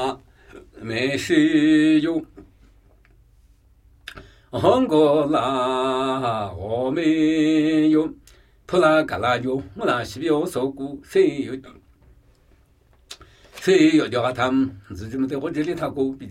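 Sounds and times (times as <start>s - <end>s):
Namuyi Tibetan ritual chanting: 0.0s - 2.5s, 4.5s - 11.9s, 13.5s - 16.2s.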